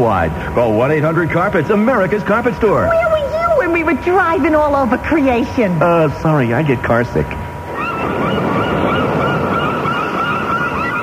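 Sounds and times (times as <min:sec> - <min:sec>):
speech: 0:00.0 - 0:07.4
surf or wind on a relaxation tape: 0:07.5 - 0:11.0
flock of geese honking: 0:07.7 - 0:11.0.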